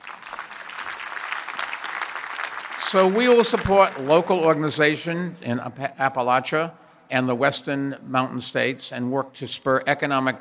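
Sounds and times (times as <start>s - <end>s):
audience applause: 0.0s - 5.0s
speech: 2.9s - 10.4s.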